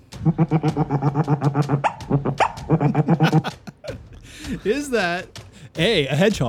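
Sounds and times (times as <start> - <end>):
otter vocalizing: 0.0 - 3.4
speech: 0.2 - 3.6, 4.5 - 6.4
laughter: 0.2 - 4.8.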